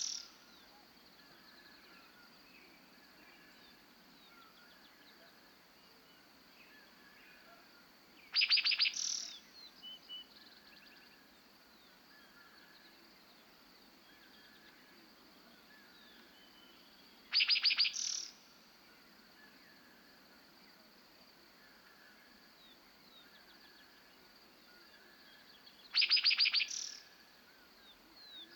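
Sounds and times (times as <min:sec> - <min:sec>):
meadowlark singing at dawn on a Montana prairie: 0:08.3 - 0:10.3, 0:16.5 - 0:18.4, 0:25.9 - 0:27.1.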